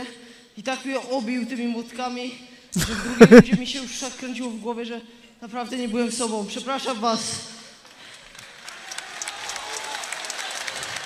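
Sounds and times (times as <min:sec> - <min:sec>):
speech: 0:00.6 - 0:07.5
laughter: 0:02.8 - 0:04.0
audience applause: 0:07.9 - 0:11.0.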